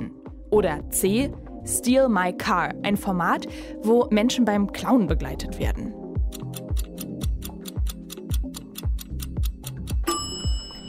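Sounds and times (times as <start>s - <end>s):
pulsing low musical bed: 0.0s - 10.8s
speech: 0.5s - 6.0s
quiz countdown timer ticking: 5.6s - 10.8s.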